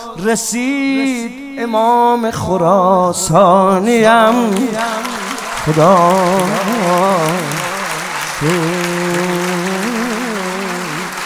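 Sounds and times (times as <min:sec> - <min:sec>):
person singing: 0:00.0 - 0:11.2
speech: 0:00.2 - 0:07.6, 0:08.4 - 0:08.9
audience clapping for Imam Reza at a devotional gathering: 0:04.0 - 0:11.2.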